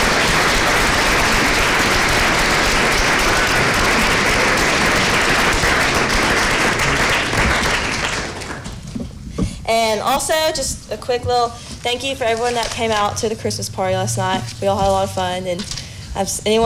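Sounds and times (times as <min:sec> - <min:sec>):
applause: 0:00.0 - 0:08.9
speech: 0:10.0 - 0:16.6.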